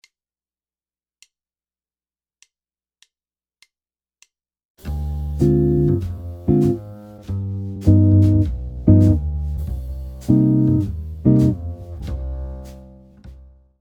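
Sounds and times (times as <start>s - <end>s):
jazz chord progression on guitar: 4.9s - 13.0s.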